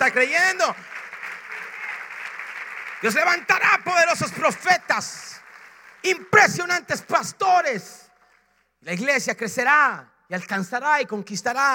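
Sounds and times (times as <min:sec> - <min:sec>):
speech: 0:00.0 - 0:01.0, 0:03.0 - 0:05.4, 0:06.0 - 0:08.0, 0:08.8 - 0:11.7
audience applauding: 0:00.0 - 0:06.8.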